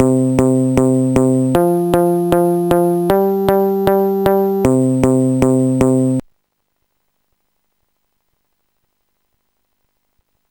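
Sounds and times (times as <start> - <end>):
bass: 0.0 - 6.2.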